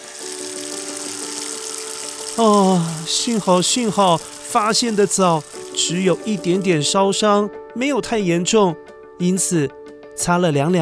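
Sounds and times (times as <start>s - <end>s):
tap water running: 0.0s - 7.0s
speech: 2.4s - 10.8s.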